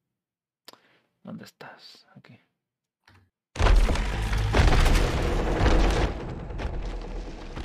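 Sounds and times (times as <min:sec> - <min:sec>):
speech: 0:01.2 - 0:02.5
wood creaking: 0:03.6 - 0:07.6.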